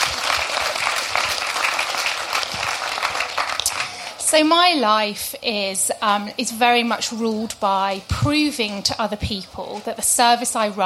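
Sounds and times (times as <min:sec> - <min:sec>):
audience applause: 0:00.0 - 0:04.2
speech: 0:04.3 - 0:10.8.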